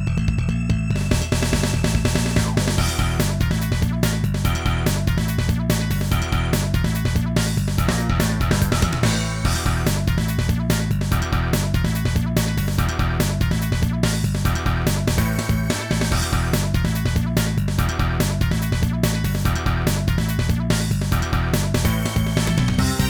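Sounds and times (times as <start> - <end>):
rock karaoke track: 0.1 - 23.0.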